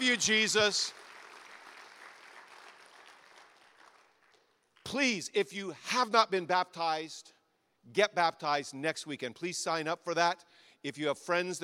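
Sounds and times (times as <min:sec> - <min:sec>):
applause for the senior pastor at a church service: 0:00.0 - 0:05.0
speech: 0:00.1 - 0:01.0, 0:04.9 - 0:11.6.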